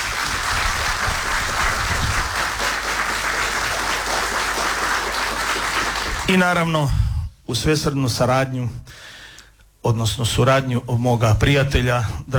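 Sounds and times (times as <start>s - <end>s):
audience applause for a musician presenting his CD at a live event: 0.0s - 6.3s
speech: 6.3s - 9.1s, 9.8s - 12.3s.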